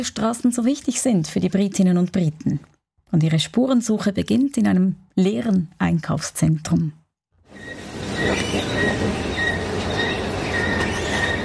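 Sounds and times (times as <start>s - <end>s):
speech: 0.0s - 7.7s
squeaking escalator in a shopping centre: 7.5s - 11.4s.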